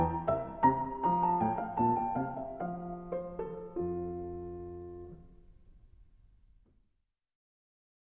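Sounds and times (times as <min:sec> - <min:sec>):
piano piece: 0:00.0 - 0:05.8.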